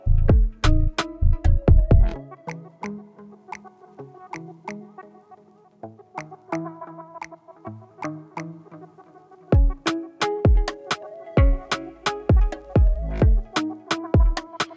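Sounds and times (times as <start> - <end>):
instrumental type beat: 0.0 - 3.0, 9.5 - 14.7.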